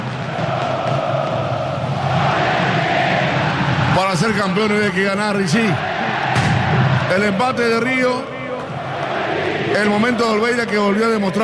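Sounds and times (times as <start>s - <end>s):
stadium crowd shouting: 0.0s - 11.4s
speech: 4.1s - 5.9s, 7.1s - 8.3s, 9.7s - 11.4s.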